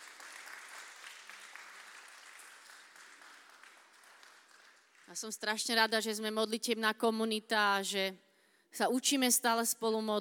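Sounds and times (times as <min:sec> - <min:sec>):
applause: 0:00.0 - 0:05.6
speech: 0:05.1 - 0:10.2.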